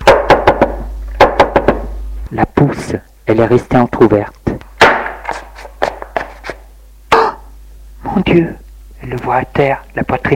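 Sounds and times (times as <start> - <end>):
knocking on a door: 0.0 - 1.9
speech: 2.3 - 4.4, 8.2 - 10.3.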